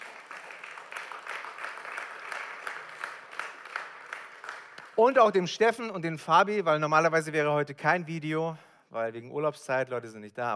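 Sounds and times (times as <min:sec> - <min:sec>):
audience applause: 0:00.0 - 0:05.0
speech: 0:05.0 - 0:10.5.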